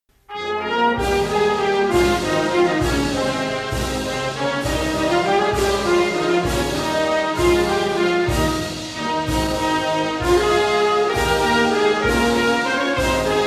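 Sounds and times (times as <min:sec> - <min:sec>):
national anthem music: 0:00.3 - 0:13.4.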